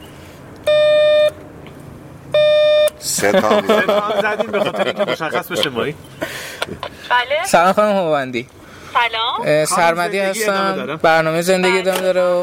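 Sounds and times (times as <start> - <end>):
intercom doorbell buzzing: 0.7 - 1.4, 2.4 - 3.0
laughter: 3.1 - 7.0
speech: 3.1 - 12.4.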